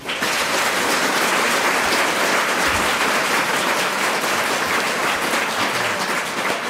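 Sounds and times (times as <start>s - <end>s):
audience applause: 0.0s - 6.6s.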